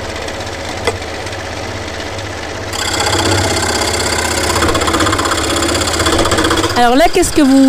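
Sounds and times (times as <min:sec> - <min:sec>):
scroll saw cutting wood: 0:02.7 - 0:07.6
speech: 0:06.8 - 0:07.6.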